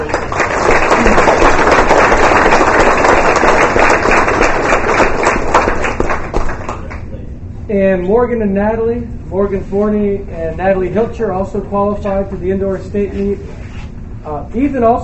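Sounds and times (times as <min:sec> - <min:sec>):
audience applause: 0:00.0 - 0:07.0
speech: 0:07.7 - 0:13.6, 0:14.2 - 0:15.0.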